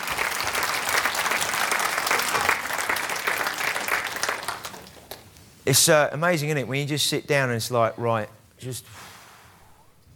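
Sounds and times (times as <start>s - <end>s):
audience applause: 0.0s - 5.2s
speech: 5.6s - 9.1s.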